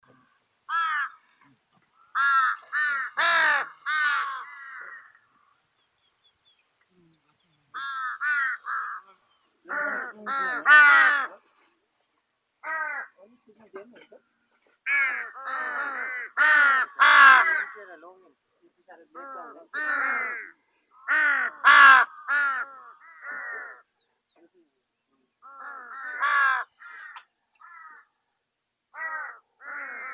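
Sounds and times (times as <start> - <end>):
large-billed crow Corvus macrorhynchos: 0.1 - 5.6, 7.7 - 11.4, 12.6 - 13.3, 14.8 - 18.0, 19.1 - 24.0, 25.4 - 28.2, 28.9 - 30.1.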